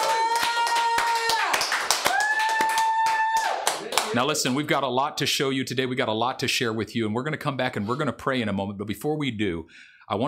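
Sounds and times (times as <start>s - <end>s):
crowd clapping: 0.0s - 4.6s
speech: 4.1s - 10.2s.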